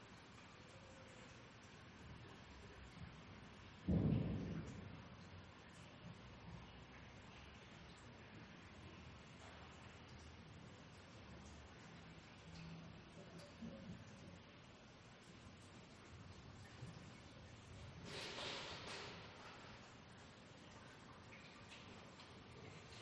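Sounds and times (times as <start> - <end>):
pipes dripping in a garage: 0.0 - 23.0.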